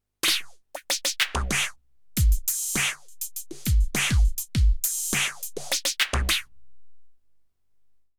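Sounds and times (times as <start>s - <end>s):
Roland TD07 electronic drum effects: 0.2s - 6.4s.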